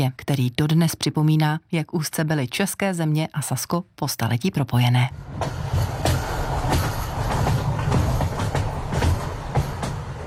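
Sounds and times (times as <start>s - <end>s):
speech: 0.0s - 5.7s
train crossing a viaduct: 4.7s - 10.2s.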